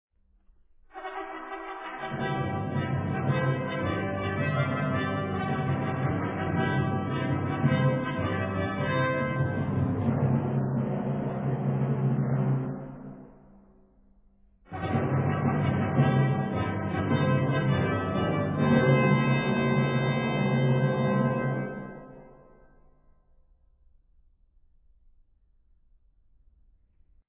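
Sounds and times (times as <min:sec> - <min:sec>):
fanfare: 0:00.9 - 0:13.0, 0:14.7 - 0:22.6.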